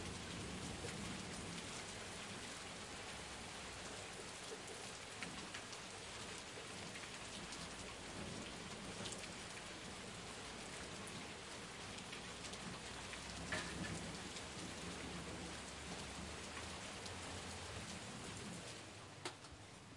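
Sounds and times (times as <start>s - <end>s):
heavy rain storm heard from under a balcony in daytime: 0.0s - 19.8s
heavy thunder: 13.4s - 15.6s.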